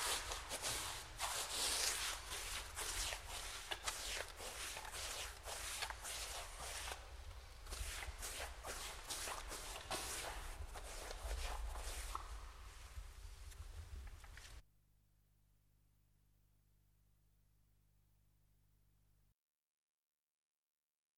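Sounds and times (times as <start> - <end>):
paintbrush strokes varnishing: 0.0 - 14.6.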